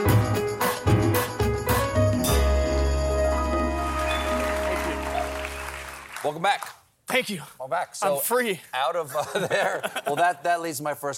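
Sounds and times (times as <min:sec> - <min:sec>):
loud band music: 0:00.0 - 0:06.1
studio audience applause greeting a returning guest on a late-night talk show: 0:03.5 - 0:06.8
speech: 0:06.3 - 0:11.1
laughter: 0:09.1 - 0:10.4.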